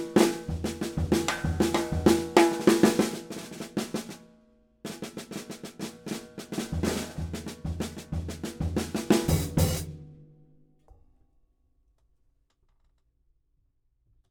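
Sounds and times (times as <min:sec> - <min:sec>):
Yamaha snare drum 6.5x13: 0:00.0 - 0:04.2, 0:04.9 - 0:10.1.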